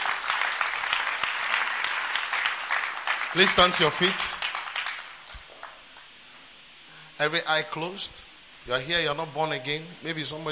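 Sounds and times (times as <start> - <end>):
audience clapping: 0.0 - 6.1
speech: 3.3 - 4.4, 7.2 - 10.4.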